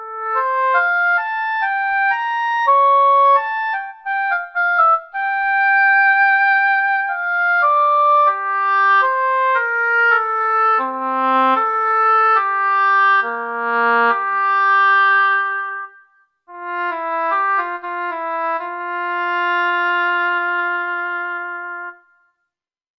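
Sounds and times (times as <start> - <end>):
orchestral woodwinds: 0.0 - 22.0.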